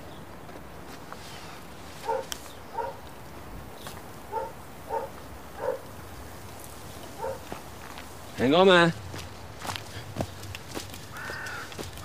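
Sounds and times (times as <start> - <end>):
hiss: 0.0 - 12.0
dog barking: 2.0 - 3.0, 4.3 - 5.9, 7.2 - 7.5
speech: 8.4 - 9.0.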